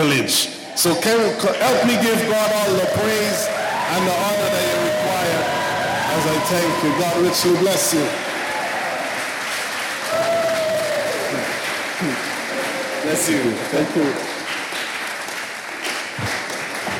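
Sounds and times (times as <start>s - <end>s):
speech: 0.1s - 5.6s, 6.2s - 8.3s, 13.2s - 14.3s
audience applause: 0.8s - 16.9s.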